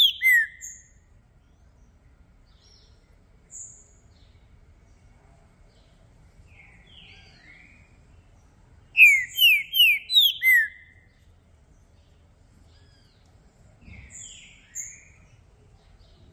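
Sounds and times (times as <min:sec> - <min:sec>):
green-winged saltator singing descending whistles: 0:00.0 - 0:01.0, 0:09.0 - 0:11.1, 0:14.1 - 0:15.2.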